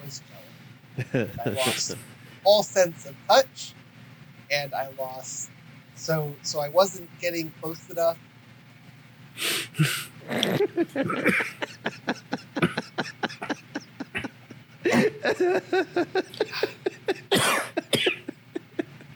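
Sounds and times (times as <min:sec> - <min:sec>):
laughter: 0:00.0 - 0:02.9, 0:09.8 - 0:19.1
speech: 0:00.1 - 0:00.4, 0:01.0 - 0:03.8, 0:04.5 - 0:08.3, 0:09.4 - 0:12.4, 0:15.2 - 0:16.8
person coughing hard: 0:01.4 - 0:02.0, 0:09.6 - 0:11.6, 0:12.6 - 0:15.4, 0:16.4 - 0:18.4.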